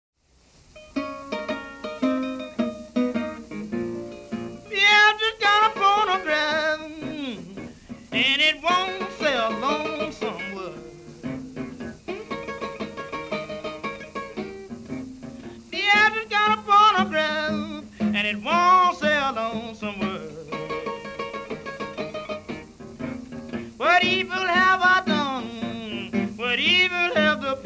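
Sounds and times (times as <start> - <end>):
phonograph blues music: 0.4 - 27.6.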